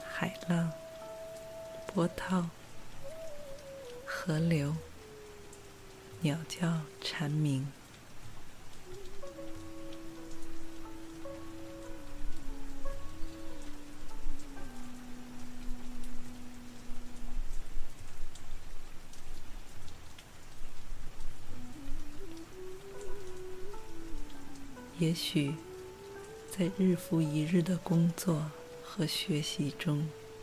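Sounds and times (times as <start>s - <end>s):
soft melody of low gliding tones: 0.0s - 18.7s, 21.1s - 30.4s
steady rain: 0.0s - 30.4s
speech: 0.2s - 0.8s, 2.0s - 2.6s, 4.2s - 4.9s, 6.2s - 7.8s, 25.0s - 25.7s, 26.6s - 30.2s.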